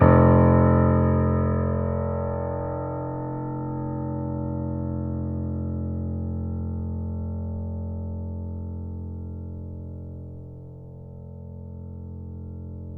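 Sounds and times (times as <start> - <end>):
grand piano note: 0.0 - 6.7.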